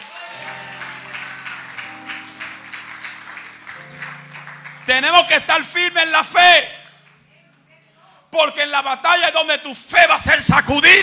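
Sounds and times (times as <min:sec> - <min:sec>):
audience applauding: 0:00.0 - 0:07.2
speech: 0:04.9 - 0:06.7, 0:08.4 - 0:11.0.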